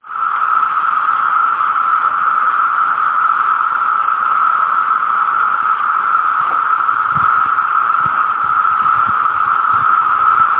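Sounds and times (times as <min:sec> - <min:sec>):
cicada swarm in Virginia: 0:00.0 - 0:10.5.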